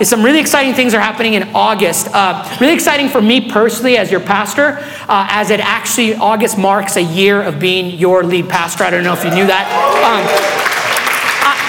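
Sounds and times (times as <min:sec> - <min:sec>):
speech: 0:00.0 - 0:10.8
audience cheering and applauding: 0:09.2 - 0:11.6.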